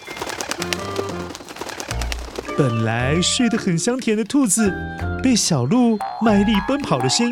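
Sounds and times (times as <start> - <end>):
birds rapidly flapping wings: 0.0 - 4.3
speech: 0.6 - 1.0, 2.6 - 7.3.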